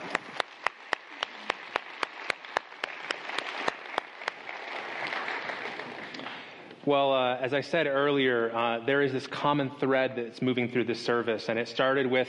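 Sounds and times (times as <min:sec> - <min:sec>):
audience applause: 0:00.0 - 0:06.6
speech: 0:06.8 - 0:12.2.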